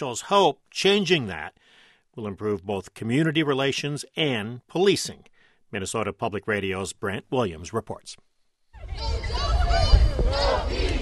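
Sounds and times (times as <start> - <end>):
speech: 0.0 - 9.8
demonstrators shouting at a protest in downtown Minneapolis: 8.8 - 10.9.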